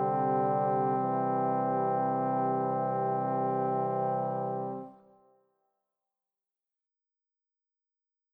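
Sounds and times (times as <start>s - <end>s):
quartet playing: 0.0s - 5.0s.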